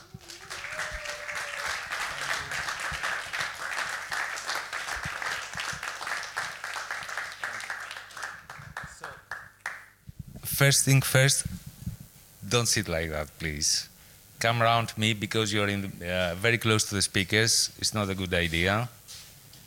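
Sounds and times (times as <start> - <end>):
audience applause: 0.0 - 9.9
speech: 10.6 - 11.6, 12.5 - 19.0.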